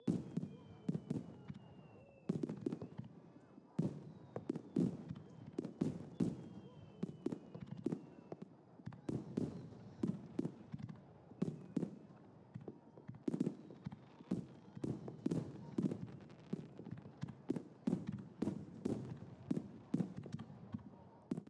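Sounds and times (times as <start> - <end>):
fireworks heard from indoors: 0.0 - 21.4.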